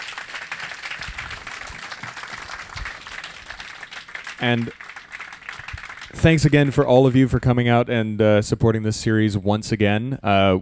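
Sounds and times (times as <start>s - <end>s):
crowd applause: 0.0s - 6.8s
speech: 4.4s - 4.8s, 6.2s - 10.5s.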